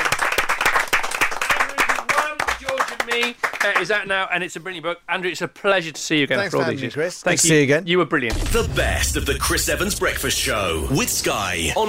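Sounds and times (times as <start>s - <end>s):
audience round of applause: 0.0s - 3.9s
speech: 3.2s - 11.8s.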